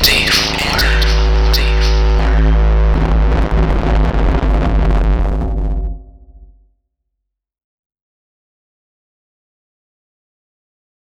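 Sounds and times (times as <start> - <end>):
depressive noise: 0.0 - 6.6.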